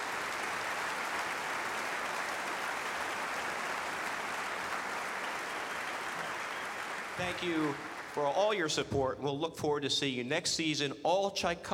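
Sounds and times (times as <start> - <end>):
concert audience round of applause: 0.0 - 8.4
speech: 7.2 - 11.7.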